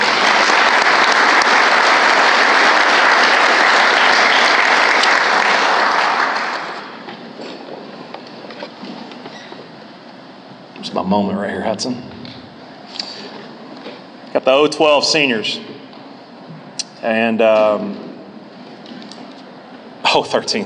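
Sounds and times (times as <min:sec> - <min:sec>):
round of applause: 0:00.0 - 0:07.1
speech: 0:11.1 - 0:12.2, 0:14.4 - 0:15.7, 0:17.0 - 0:18.0, 0:20.1 - 0:20.6.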